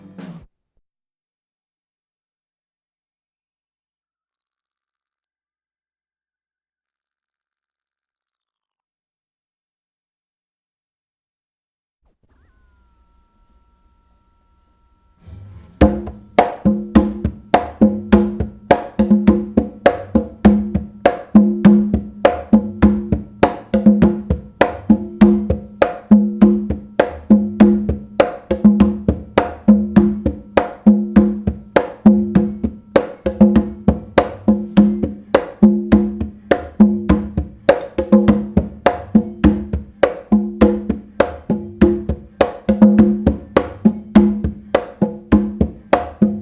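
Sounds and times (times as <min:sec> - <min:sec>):
conga drum: 0:15.2 - 0:46.4.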